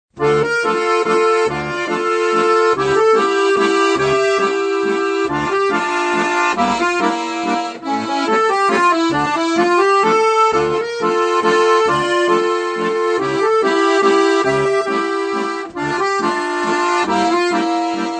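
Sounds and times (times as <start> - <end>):
accordion playing a Russian waltz: 0.1 - 18.1.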